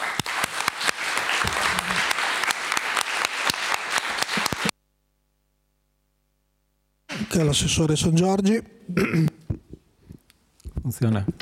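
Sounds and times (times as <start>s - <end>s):
audience applause: 0.0s - 4.7s
speech: 7.4s - 9.3s, 11.0s - 11.3s.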